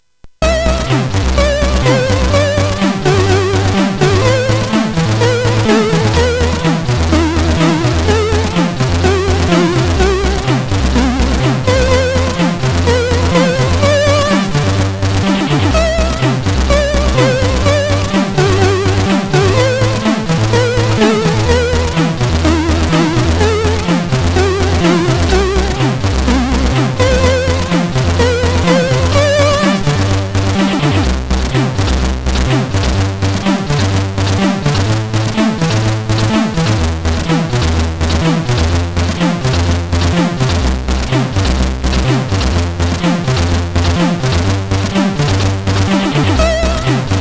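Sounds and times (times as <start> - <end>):
national anthem on SID CSG8580R5 sound chip: 0.4 - 47.1.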